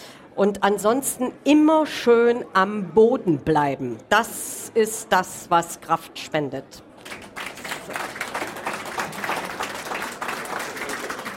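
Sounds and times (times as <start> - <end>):
speech: 0.4 - 7.2
crowd applauding: 7.0 - 11.3.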